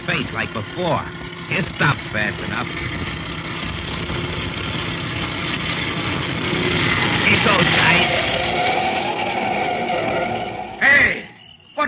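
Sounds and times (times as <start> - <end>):
heavy truck engine idling: 0.0 - 11.5
speech: 0.1 - 3.1, 4.1 - 4.8, 6.5 - 8.2.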